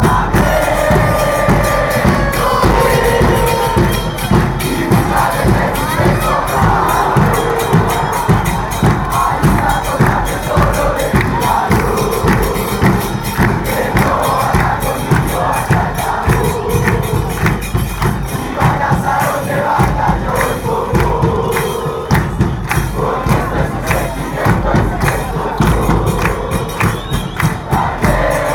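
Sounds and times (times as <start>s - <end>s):
chant: 0.0s - 28.5s.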